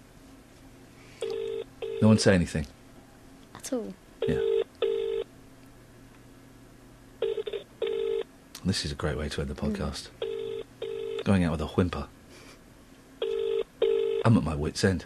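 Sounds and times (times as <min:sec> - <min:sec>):
telephone dialing: 0:01.2 - 0:02.0, 0:04.4 - 0:05.2, 0:07.2 - 0:08.2, 0:10.2 - 0:11.3, 0:13.2 - 0:14.2
telephone ringing: 0:01.2 - 0:02.2, 0:04.2 - 0:05.3, 0:07.2 - 0:08.2, 0:10.2 - 0:11.3, 0:13.2 - 0:14.3
speech: 0:02.0 - 0:02.8, 0:03.7 - 0:04.5, 0:08.6 - 0:10.3, 0:11.3 - 0:12.2, 0:14.2 - 0:15.0.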